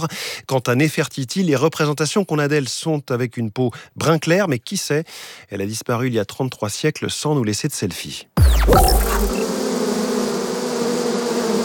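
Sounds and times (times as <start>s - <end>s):
speech: 0.0s - 9.6s
huge bee swarm buzzing: 8.7s - 11.6s.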